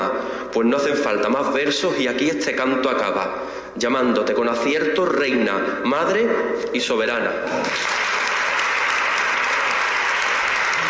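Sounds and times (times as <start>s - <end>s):
speech: 0.5s - 8.0s
large audience applause after a speech: 7.6s - 10.8s.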